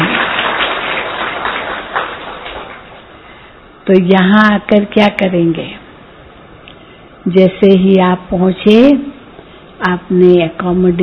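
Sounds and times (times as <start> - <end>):
audience clapping: 0.0 - 3.1
speech: 3.9 - 5.8, 7.2 - 9.1, 9.8 - 11.0.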